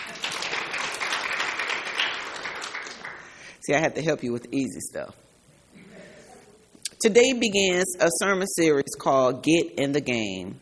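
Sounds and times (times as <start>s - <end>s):
audience applause: 0.0s - 3.4s
speech: 3.7s - 5.3s, 7.0s - 10.5s.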